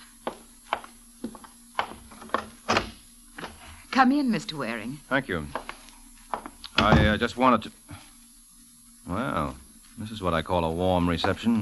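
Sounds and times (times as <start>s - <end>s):
door being opened: 1.8s - 3.8s, 6.7s - 7.2s
speech: 4.0s - 5.6s, 6.8s - 7.8s, 9.1s - 11.5s.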